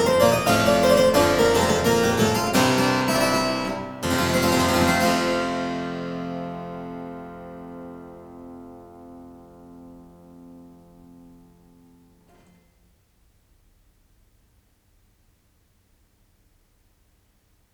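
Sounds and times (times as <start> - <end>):
harpsichord galliard: 0.0 - 8.4.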